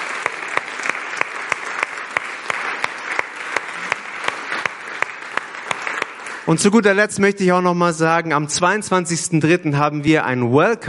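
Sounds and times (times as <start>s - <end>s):
audience applause: 0.0s - 7.0s
speech: 6.5s - 10.8s.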